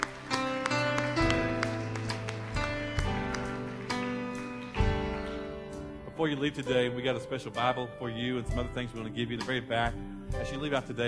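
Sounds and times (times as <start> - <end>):
audience clapping: 0.0 - 6.0
speech: 6.2 - 11.0.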